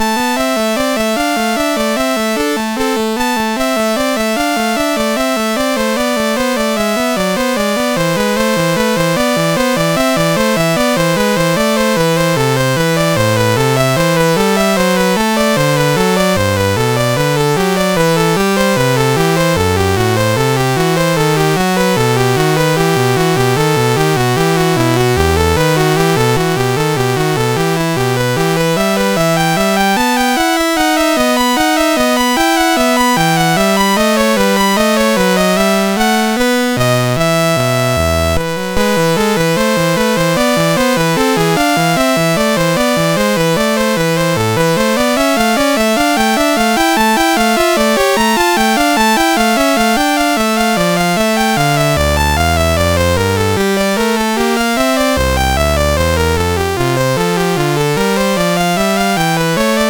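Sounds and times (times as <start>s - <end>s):
baroque bourrée on MOS6581R2 chip: 0.0s - 59.8s.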